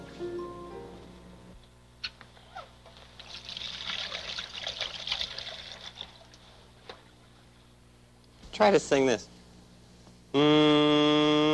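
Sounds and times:
hands washed under running water: 3.2 - 6.4
speech: 8.6 - 9.3, 10.3 - 11.4.

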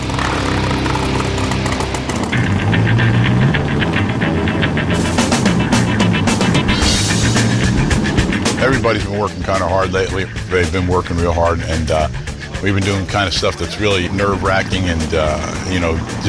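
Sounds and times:
chopper trike motor running: 0.0 - 16.2
speech: 8.8 - 16.2.

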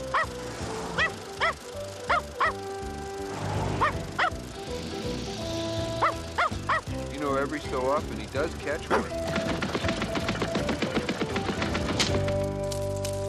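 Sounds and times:
vehicle rumbling: 0.0 - 13.2
dog barking while chasing a car: 0.1 - 0.4, 1.0 - 2.6, 3.8 - 4.4, 6.0 - 6.9, 8.9 - 9.1
speech: 7.5 - 9.4.

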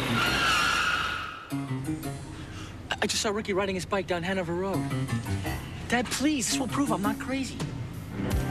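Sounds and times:
car tires skidding and squealing as the car brakes hard: 0.0 - 1.8
speech: 3.0 - 8.4.

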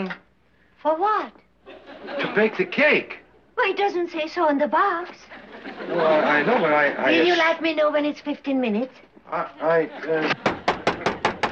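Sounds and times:
speech: 0.0 - 0.2, 0.8 - 1.4, 2.0 - 10.6
laughter: 1.6 - 3.1, 5.3 - 7.4, 9.3 - 11.2
knocking on a door: 10.4 - 11.5.

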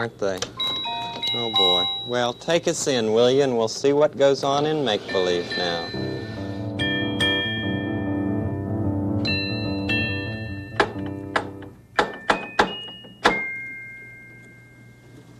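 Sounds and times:
speech: 0.0 - 0.6, 1.3 - 6.4
soft chiming melody: 0.6 - 2.4, 5.0 - 11.6, 12.2 - 15.3
metallic knocks of a door knocker: 10.7 - 13.4.

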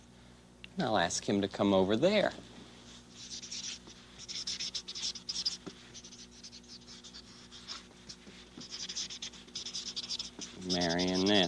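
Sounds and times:
speech: 0.8 - 2.6, 10.7 - 11.4
note being written with scratching strokes: 3.2 - 11.4.

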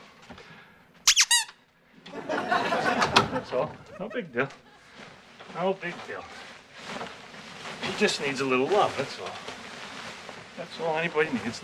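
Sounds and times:
squeaky dog toy squeaks: 1.0 - 1.6
laughter: 2.0 - 4.9
speech: 3.5 - 4.7, 5.5 - 6.4, 7.8 - 9.5, 10.6 - 11.6
soft rustling: 4.0 - 11.6.

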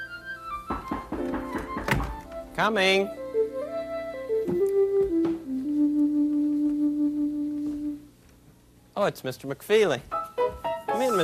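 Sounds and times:
sustained musical tone: 0.0 - 8.1
firm knocking on a wooden door: 0.7 - 2.2
speech: 2.6 - 3.2, 9.0 - 10.2, 11.0 - 11.2.

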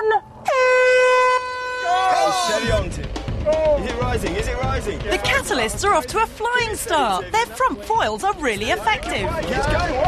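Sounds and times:
horn signalling race start: 0.4 - 3.1
speech: 4.2 - 10.0.

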